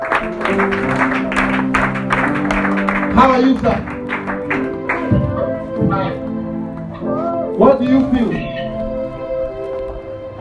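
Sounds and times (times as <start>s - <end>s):
audience clapping: 0.0s - 5.6s
steady sustained musical tones: 0.0s - 10.3s
speech: 0.6s - 0.8s, 3.2s - 3.9s.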